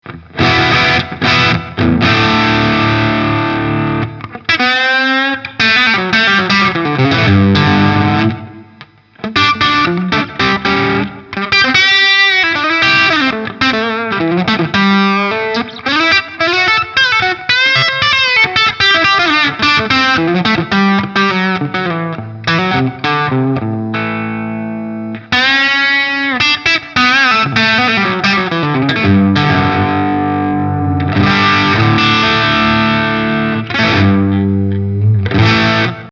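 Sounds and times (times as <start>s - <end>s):
distorted bridge pickup guitar: 0.0s - 36.1s.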